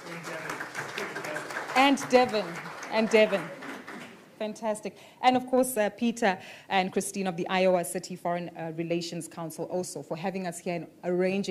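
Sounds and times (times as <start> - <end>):
audience applause at an Iowa City Foreign Relations Council conversation: 0.0 - 4.2
speech: 1.8 - 3.6, 4.4 - 11.4.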